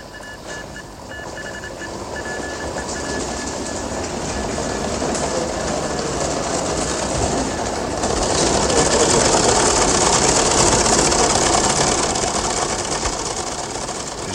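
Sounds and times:
teleprinter running: 0.0 - 14.3.

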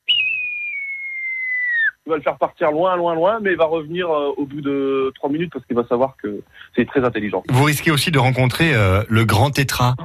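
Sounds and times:
human whistled imitation of a falcon or buzzard cry: 0.0 - 2.1
speech: 2.1 - 10.0.

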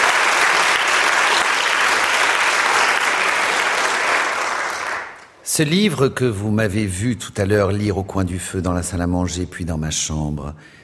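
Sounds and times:
audience applause: 0.0 - 5.3
speech: 5.6 - 10.8.

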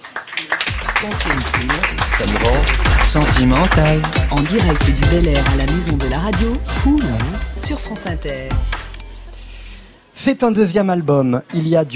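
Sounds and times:
audience applause: 0.0 - 5.2
speech: 1.0 - 8.8, 10.2 - 11.9.

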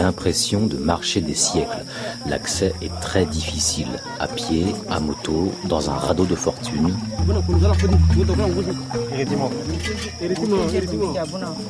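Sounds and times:
speech: 0.0 - 11.6
steady high insect drone: 0.0 - 11.6
great hornbill honking calls: 6.3 - 10.3.

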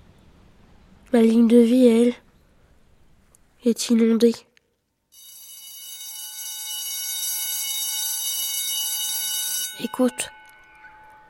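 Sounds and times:
speech: 1.1 - 2.2, 3.6 - 4.5, 9.8 - 10.4
electric bell ringing: 5.2 - 11.2.

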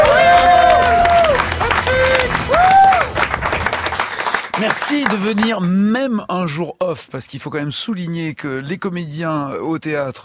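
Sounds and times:
whooping cries: 0.0 - 3.1
live audience clapping for a guest on a show: 0.0 - 5.6
speech: 4.9 - 10.2.

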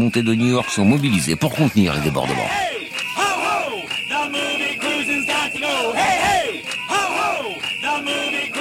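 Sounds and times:
speech: 0.0 - 2.7
protest crowd chanting slogans: 1.9 - 8.5.

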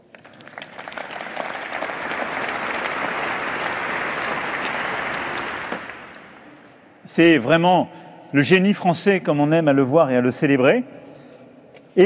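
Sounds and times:
audience applause: 0.0 - 6.8
speech: 7.2 - 11.0.

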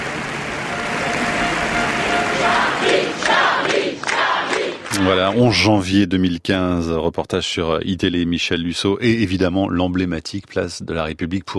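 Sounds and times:
crowd applauding: 0.0 - 5.6
speech: 5.0 - 11.5.

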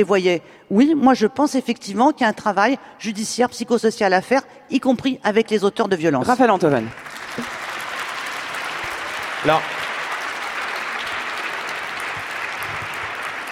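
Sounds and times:
speech: 0.0 - 7.6, 9.4 - 9.8
audience clapping: 6.4 - 13.4.

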